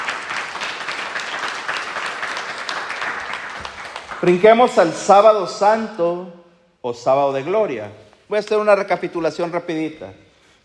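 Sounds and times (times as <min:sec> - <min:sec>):
audience applauding: 0:00.0 - 0:04.8
speech: 0:04.2 - 0:10.6.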